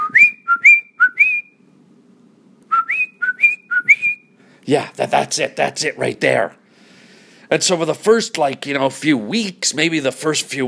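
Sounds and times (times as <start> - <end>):
person whistling a ringtone-style tune: 0.0 - 1.6, 2.7 - 4.3
speech: 4.7 - 6.6, 7.5 - 10.6.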